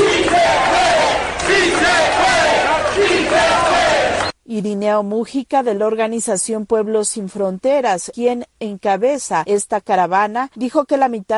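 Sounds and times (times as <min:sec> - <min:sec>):
crowd shouting in support at protest: 0:00.0 - 0:04.3
speech: 0:04.6 - 0:11.3.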